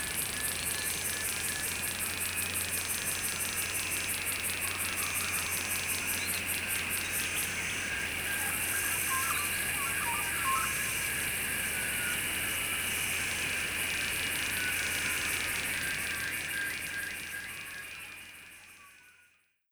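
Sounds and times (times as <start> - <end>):
cicadas in summer: 0.0 - 19.4.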